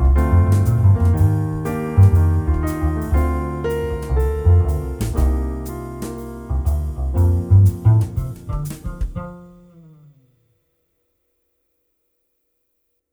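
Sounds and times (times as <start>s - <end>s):
jazz music: 0.0s - 9.8s.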